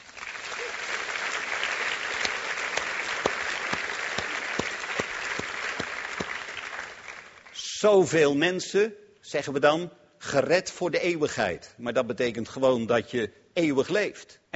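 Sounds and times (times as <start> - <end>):
audience applause: 0.0 - 7.5
speech: 7.8 - 14.5.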